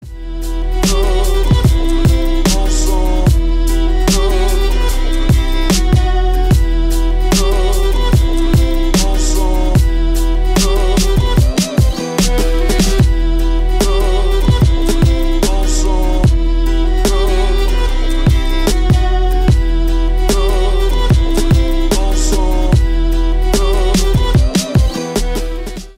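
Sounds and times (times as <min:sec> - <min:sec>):
instrumental music: 0:00.0 - 0:25.9.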